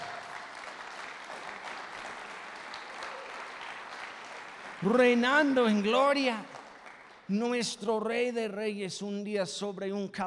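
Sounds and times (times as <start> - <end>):
audience applause: 0.0 - 7.3
speech: 4.8 - 6.5, 7.3 - 10.2.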